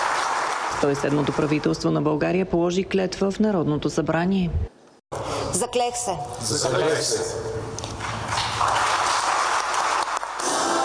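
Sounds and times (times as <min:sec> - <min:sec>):
applause in parliament: 0:00.0 - 0:01.8, 0:07.8 - 0:10.7
speech: 0:00.8 - 0:04.8, 0:05.6 - 0:07.8.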